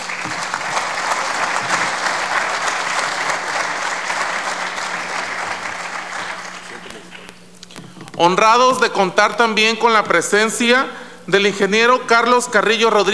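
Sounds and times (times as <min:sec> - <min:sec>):
crowd applauding: 0:00.0 - 0:07.3
speech: 0:08.2 - 0:13.1.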